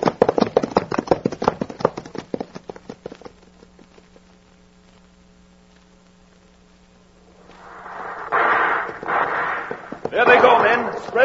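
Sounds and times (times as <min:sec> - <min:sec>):
horses galloping: 0:00.0 - 0:04.3, 0:09.7 - 0:11.2
low hum: 0:04.2 - 0:11.2
rough burst of noise: 0:07.2 - 0:11.2.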